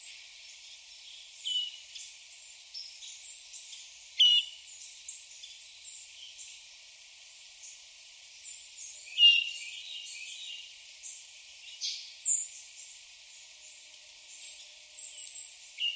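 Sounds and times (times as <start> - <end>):
Hermit thrush Catharus guttatus calls: 1.1 - 2.1, 3.0 - 4.8, 9.0 - 10.6.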